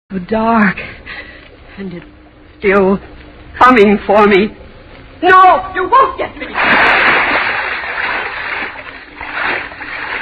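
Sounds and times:
speech: 0:00.1 - 0:01.2, 0:01.8 - 0:04.6, 0:05.2 - 0:07.0
splashing of someone swimming in water in the dark: 0:06.5 - 0:10.2.

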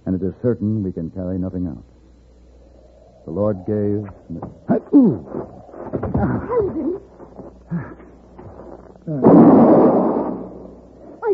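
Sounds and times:
speech: 0:00.1 - 0:02.0, 0:03.2 - 0:07.0, 0:09.0 - 0:10.1
single rifle gunshot: 0:09.2 - 0:10.7.

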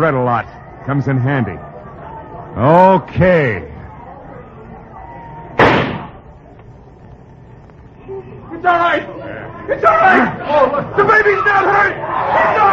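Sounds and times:
speech: 0:00.0 - 0:01.7, 0:02.6 - 0:03.7, 0:08.6 - 0:12.7
gunshot in a radio drama: 0:05.6 - 0:06.2.

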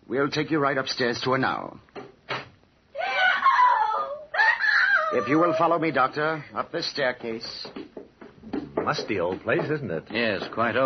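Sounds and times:
speech: 0:00.1 - 0:01.9, 0:05.1 - 0:07.8, 0:08.8 - 0:10.8
patient screaming: 0:03.0 - 0:05.7.

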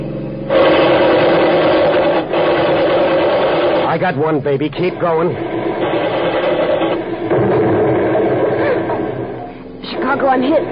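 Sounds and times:
machine gun fire from a car driving through a roadblock: 0:00.5 - 0:04.3, 0:05.3 - 0:09.4
speech: 0:04.0 - 0:06.1, 0:10.0 - 0:10.7.

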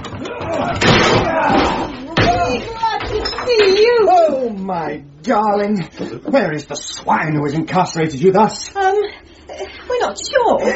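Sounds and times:
shed door being broken down: 0:00.0 - 0:03.8
speech: 0:04.7 - 0:10.7.

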